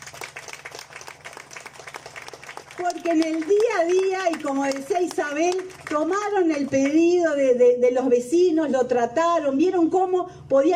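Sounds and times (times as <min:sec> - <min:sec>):
audience applause for a company's commercial and distribution team: 0:00.0 - 0:06.0
speech: 0:02.8 - 0:10.7.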